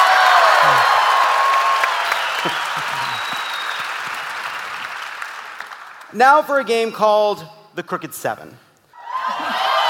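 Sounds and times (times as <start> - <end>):
audience applause: 0.0 - 6.1, 9.2 - 9.8
speech: 6.2 - 8.7.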